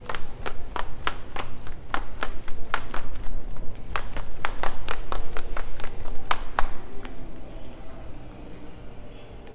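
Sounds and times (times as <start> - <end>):
fast walking beat: 0.0 - 7.5.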